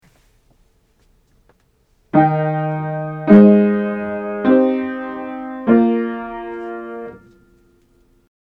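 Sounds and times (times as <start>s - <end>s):
root position triads for aural training: 2.2s - 7.4s.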